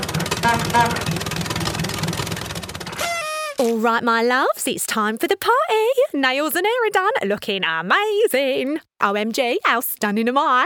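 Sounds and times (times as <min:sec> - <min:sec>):
car engine running: 0:00.0 - 0:03.0
speech: 0:00.5 - 0:01.2, 0:03.8 - 0:10.6.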